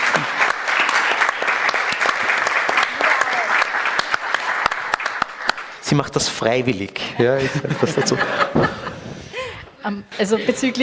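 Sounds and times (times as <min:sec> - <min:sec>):
crowd clapping: 0:00.0 - 0:06.4
speech: 0:05.9 - 0:08.9, 0:09.8 - 0:10.8
laughter: 0:07.0 - 0:10.8.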